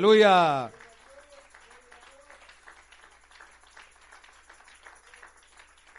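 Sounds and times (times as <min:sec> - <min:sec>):
speech: 0:00.0 - 0:00.8
audience applause: 0:00.0 - 0:05.9.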